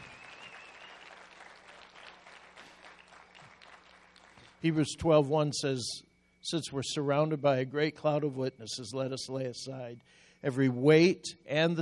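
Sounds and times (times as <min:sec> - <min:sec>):
audience hand clapping: 0:00.0 - 0:04.6
speech: 0:04.6 - 0:11.8.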